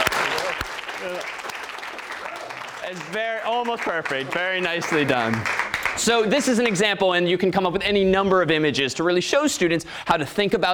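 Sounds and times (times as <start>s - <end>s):
round of applause: 0.0s - 6.8s
speech: 1.0s - 1.4s, 2.9s - 10.7s.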